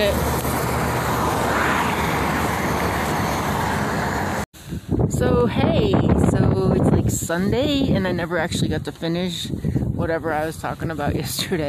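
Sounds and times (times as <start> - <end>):
speech: 0.0 - 0.3, 5.2 - 6.7, 7.3 - 11.6
train passing: 0.0 - 4.4.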